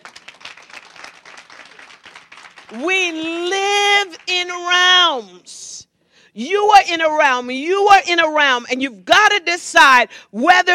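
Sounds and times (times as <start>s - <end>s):
audience applause: 0.0s - 2.8s
speech: 2.7s - 3.6s, 4.3s - 5.6s, 6.4s - 10.7s.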